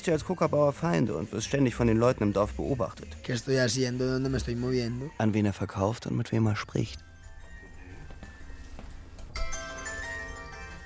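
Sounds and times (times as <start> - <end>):
speech: 0.0 - 7.1
mobile phone ringing: 7.0 - 10.8.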